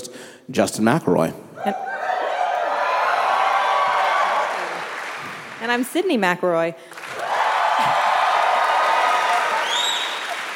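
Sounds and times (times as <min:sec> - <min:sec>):
speech: 0:00.5 - 0:01.9, 0:05.6 - 0:07.0
crowd applauding and cheering: 0:01.8 - 0:06.0, 0:06.9 - 0:10.5
high whistles: 0:09.5 - 0:10.4.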